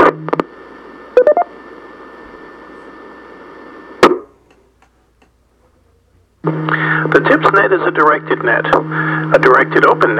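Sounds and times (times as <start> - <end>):
steady amateur radio hiss: 0.0 - 4.4, 6.4 - 10.1
DTMF tones sent over an amateur radio link to reset a repeater: 1.2 - 1.5
speech: 6.5 - 10.1.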